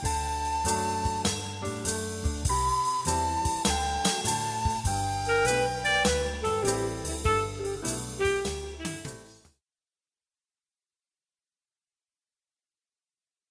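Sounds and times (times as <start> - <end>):
jazz doina played on flabiol: 0.0 - 9.3.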